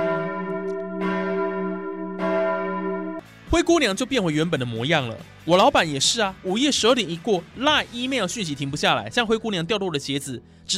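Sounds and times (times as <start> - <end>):
bell striking midnight: 0.0 - 3.3
speech: 3.5 - 10.7.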